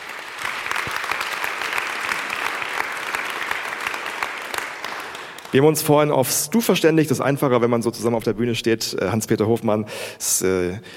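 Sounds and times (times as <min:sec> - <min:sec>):
audience applause: 0:00.0 - 0:05.7
speech: 0:05.5 - 0:10.9.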